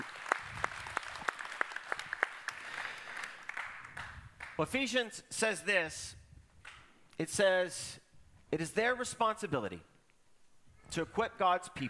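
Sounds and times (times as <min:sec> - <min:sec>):
audience round of applause: 0:00.0 - 0:04.1
speech: 0:04.6 - 0:06.2, 0:07.2 - 0:09.9, 0:10.9 - 0:11.8.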